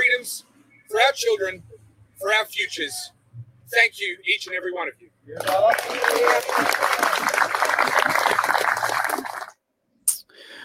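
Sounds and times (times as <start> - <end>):
speech: 0.3 - 8.3
crowd applause at outdoor rally: 5.4 - 9.5.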